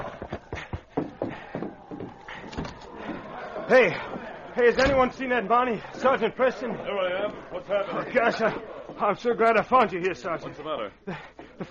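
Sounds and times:
hoofbeats of a horse ridden hurriedly up to a cafe and reined in: 0.0s - 2.4s
speech: 3.7s - 11.6s
laughter: 5.5s - 11.6s.

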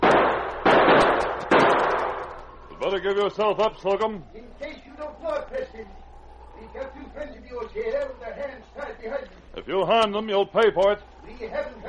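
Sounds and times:
gunshots in a radio drama shootout: 0.0s - 2.5s
speech: 2.9s - 6.0s, 6.6s - 11.8s.

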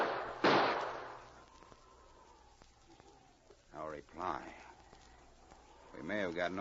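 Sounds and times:
gunshot in a radio drama: 0.0s - 1.2s
speech: 3.9s - 4.7s, 6.0s - 6.5s.

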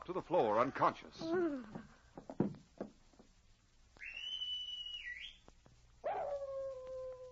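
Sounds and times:
speech: 0.0s - 1.9s
high sustained whistle-like tone: 4.0s - 5.4s
dog long falling howl: 6.0s - 7.3s.

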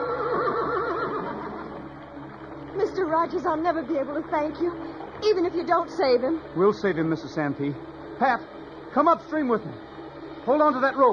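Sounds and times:
horse neighing in a radio drama: 0.0s - 1.9s
speech: 3.1s - 11.1s.

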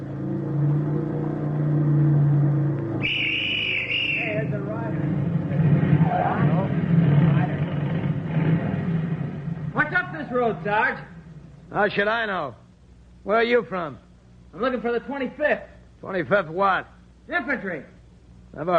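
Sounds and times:
motorcycle approaching: 0.0s - 11.7s
speech: 10.6s - 11.1s, 11.7s - 12.6s, 13.2s - 17.9s, 18.5s - 18.7s.

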